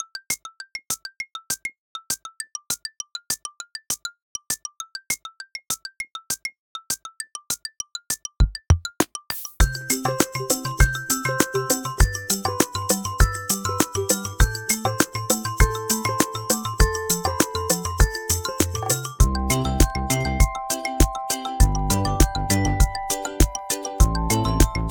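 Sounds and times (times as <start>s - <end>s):
instrumental music: 8.4s - 24.8s.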